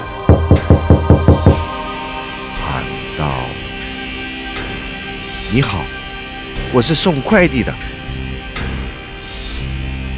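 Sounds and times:
knocking hard on a door: 0.3s - 1.6s
speech: 5.6s - 6.0s, 6.7s - 8.0s.

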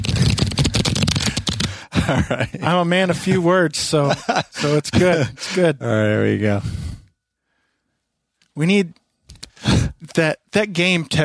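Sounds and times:
cards being shuffled: 0.0s - 1.7s
laughter: 1.9s - 5.8s
speech: 2.1s - 6.8s, 8.6s - 9.0s, 10.0s - 11.2s.

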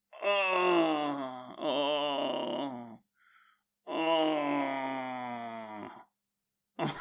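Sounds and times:
person imitating deep groaning while asleep: 0.2s - 3.0s, 3.9s - 6.0s
faint breath: 3.2s - 3.6s.

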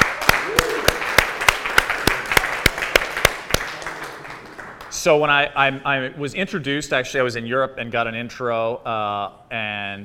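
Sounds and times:
audience applause: 0.0s - 5.0s
speech: 5.0s - 10.0s.

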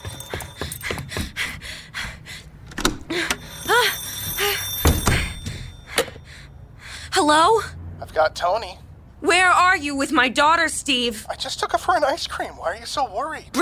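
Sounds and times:
telephone ringing in the apartment: 0.0s - 0.8s, 3.2s - 6.6s
speech: 7.3s - 13.5s.

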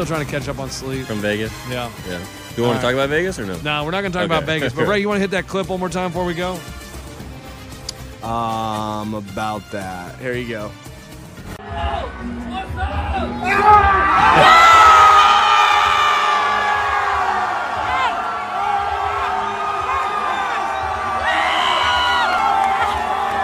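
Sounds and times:
speech: 0.0s - 6.8s, 8.2s - 10.9s
large crowd cheering and shouting: 11.6s - 23.4s.

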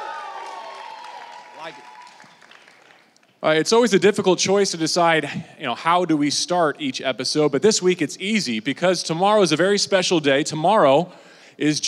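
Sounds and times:
live audience applause: 0.0s - 3.2s
speech: 1.6s - 2.1s, 3.4s - 11.8s.

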